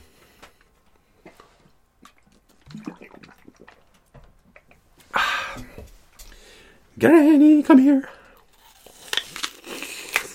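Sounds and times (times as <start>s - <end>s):
person gulping and swallowing a drink of water: 1.2s - 5.8s
speech: 7.0s - 8.2s.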